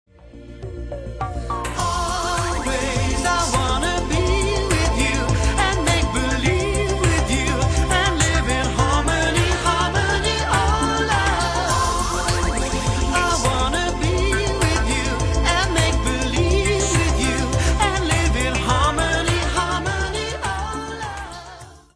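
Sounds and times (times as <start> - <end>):
chorus singing: 1.6 - 21.9.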